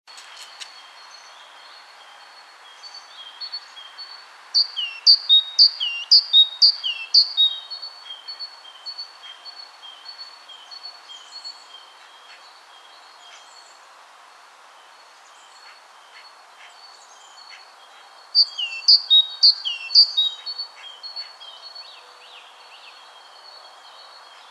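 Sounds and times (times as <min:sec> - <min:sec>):
speech: 0:04.6 - 0:07.3, 0:19.5 - 0:20.5
great tit calling: 0:04.6 - 0:07.7, 0:18.4 - 0:21.4.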